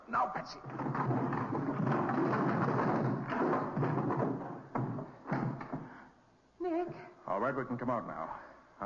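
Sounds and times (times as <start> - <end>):
speech: 0.3 - 2.5, 7.5 - 8.8
barrels being pushed over and crashing: 0.6 - 5.9.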